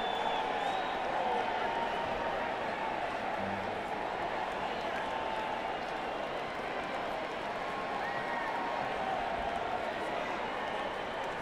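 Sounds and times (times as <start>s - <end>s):
crowd in an arena hall: 0.0s - 11.3s.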